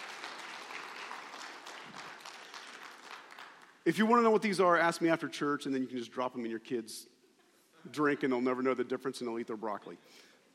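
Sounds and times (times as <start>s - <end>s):
crowd applause: 0.0s - 3.8s
speech: 3.9s - 7.1s, 7.8s - 10.3s.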